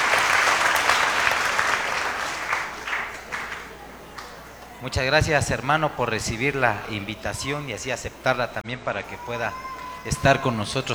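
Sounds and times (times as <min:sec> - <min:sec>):
audience applause: 0:00.0 - 0:04.8
speech: 0:04.8 - 0:10.9.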